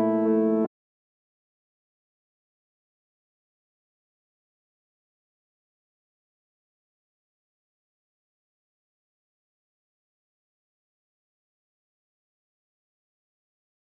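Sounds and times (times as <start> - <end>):
keys melody loop in D minor at 145 BPM: 0.0 - 0.7.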